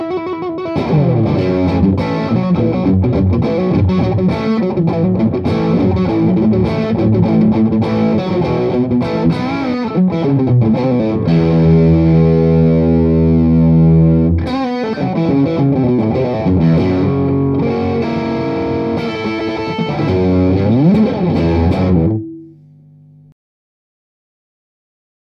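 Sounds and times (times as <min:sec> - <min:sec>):
vintage fuzz guitar: 0:00.0 - 0:23.3.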